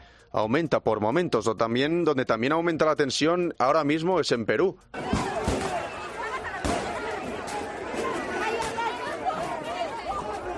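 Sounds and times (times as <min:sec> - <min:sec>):
speech: 0:00.3 - 0:05.2
protest crowd outside the Congress in Lima, Peru dispersed by police: 0:04.9 - 0:10.5.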